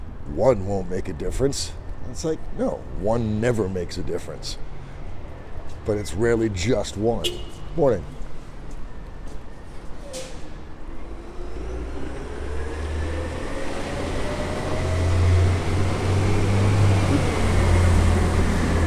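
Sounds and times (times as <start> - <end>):
speech: 0.3 - 4.7, 5.8 - 8.2
garbage trucks driving by outside in Portland: 9.6 - 18.8.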